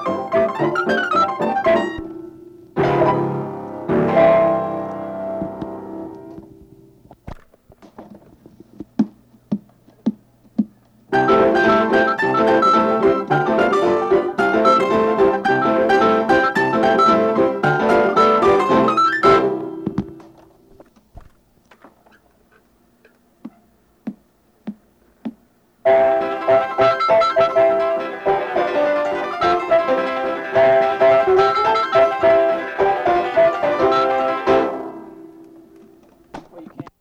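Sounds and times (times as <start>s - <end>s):
piano pieces: 0.0s - 7.0s, 10.0s - 20.8s, 25.8s - 36.8s.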